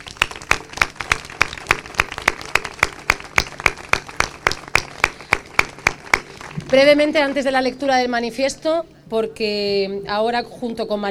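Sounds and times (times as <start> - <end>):
audience clapping together in time: 0.0 - 6.9
speech: 6.7 - 11.1.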